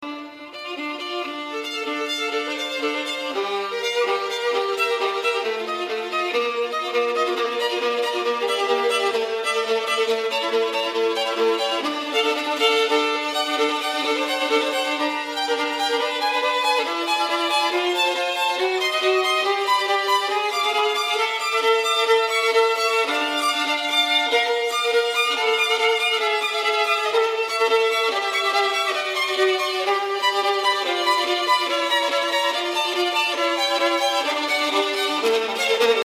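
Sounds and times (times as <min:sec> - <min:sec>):
violin: 0:00.0 - 0:36.0.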